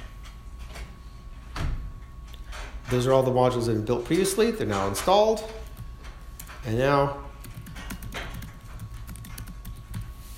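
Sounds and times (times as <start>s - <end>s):
speech: 2.9s - 5.6s, 6.6s - 7.3s
keystrokes on a computer keyboard typing a terminal command: 7.4s - 10.1s.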